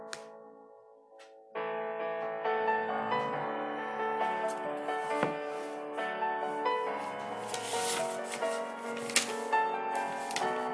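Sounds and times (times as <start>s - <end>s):
K-pop piano tune: 0.0s - 10.7s
pencil strokes and light rubbing: 7.0s - 10.6s.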